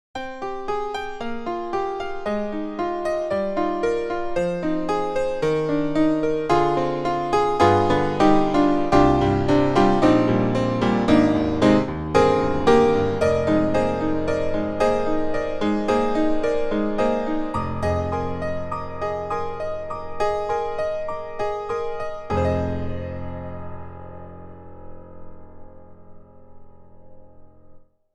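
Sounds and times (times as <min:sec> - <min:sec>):
Steinway D piano: 0:00.1 - 0:28.1.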